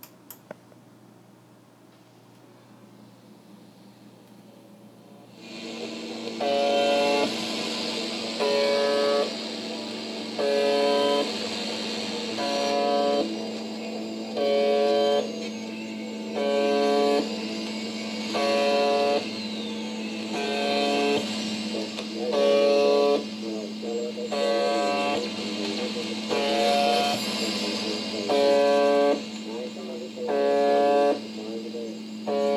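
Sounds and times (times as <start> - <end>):
UVB-76 shortwave radio buzzer broadcast: 5.3 - 32.5.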